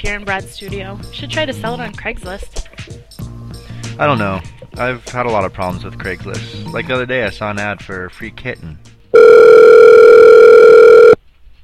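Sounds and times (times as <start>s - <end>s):
speech: 0.0s - 3.2s, 4.0s - 9.6s
telephone dial tone: 9.2s - 11.2s.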